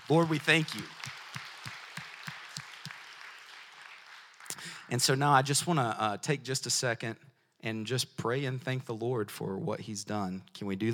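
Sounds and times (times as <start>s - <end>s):
hand clapping: 0.0s - 5.0s
speech: 0.1s - 1.0s, 4.9s - 10.9s.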